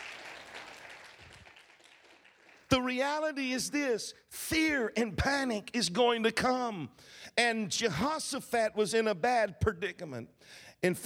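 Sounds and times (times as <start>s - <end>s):
audience hand clap of praise: 0.0s - 2.7s
speech: 2.8s - 11.0s.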